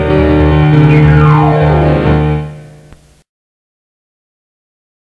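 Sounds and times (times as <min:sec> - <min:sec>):
march music: 0:00.2 - 0:02.6.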